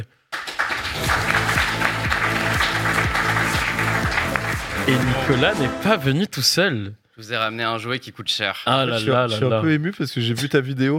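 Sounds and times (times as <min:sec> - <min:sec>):
audience applause: 0:00.3 - 0:05.7
speech: 0:04.8 - 0:10.9.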